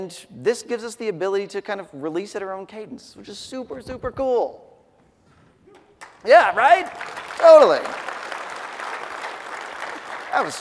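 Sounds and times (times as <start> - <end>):
speech: 0.0 - 4.7, 6.2 - 8.0, 10.3 - 10.6
audience applause during a tech conference talk: 6.0 - 10.6.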